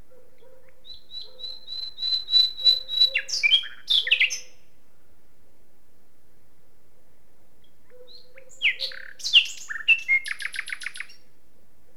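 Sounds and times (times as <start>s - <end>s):
common nightingale Luscinia megarhynchos song: 0.4s - 4.7s, 7.6s - 11.3s.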